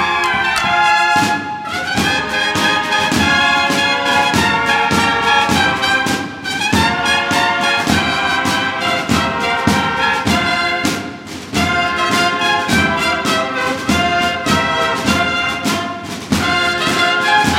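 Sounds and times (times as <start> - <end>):
bugle and drum band playing: 0.0 - 17.5.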